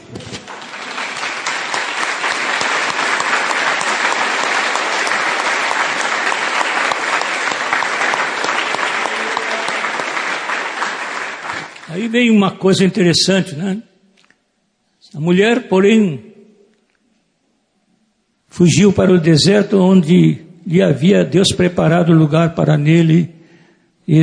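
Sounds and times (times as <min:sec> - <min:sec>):
audience applause: 0:00.3 - 0:12.1
speech: 0:12.0 - 0:13.9, 0:15.1 - 0:16.3, 0:18.6 - 0:23.4, 0:24.1 - 0:24.2.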